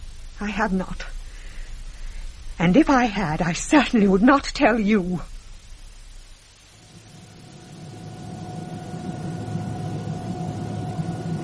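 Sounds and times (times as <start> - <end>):
speech: 0.4 - 1.2, 2.6 - 5.3
airliner landing at Tangier Airport: 6.9 - 11.4.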